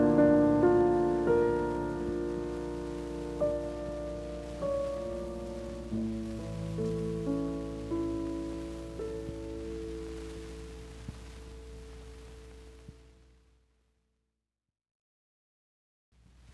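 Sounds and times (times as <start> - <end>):
etude in E minor vivace: 0.0 - 12.8.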